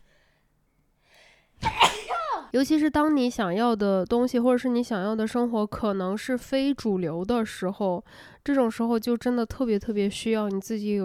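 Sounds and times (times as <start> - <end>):
person sneezing: 1.6 - 2.5
speech: 2.5 - 11.0.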